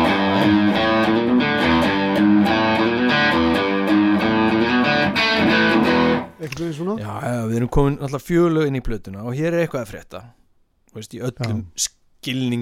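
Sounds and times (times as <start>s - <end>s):
distorted rock guitar riff from album track: 0.0s - 6.4s
speech: 6.6s - 12.6s.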